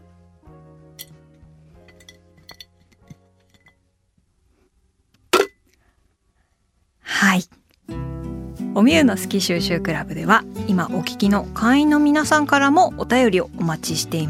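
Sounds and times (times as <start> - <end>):
small items clinking into a glass jar: 1.9 - 3.8
speech: 8.8 - 14.2.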